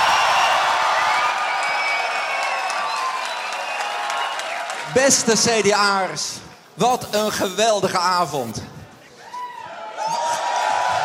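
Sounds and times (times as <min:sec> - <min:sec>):
crowd cheering at a CDA party gathering on Dutch national election night: 0:00.0 - 0:04.9, 0:09.1 - 0:11.0
speech: 0:04.9 - 0:08.7.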